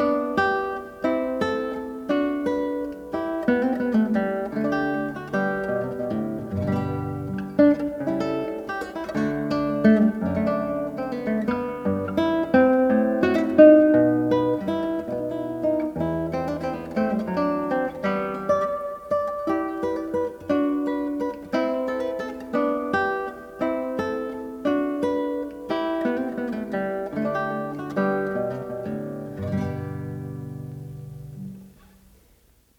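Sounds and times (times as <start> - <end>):
solo guitar piece: 0.0 - 32.7.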